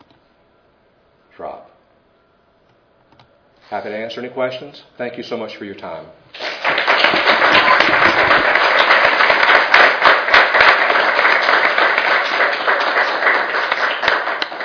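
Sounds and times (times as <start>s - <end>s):
speech: 3.7s - 6.4s
audience applause: 6.4s - 14.6s.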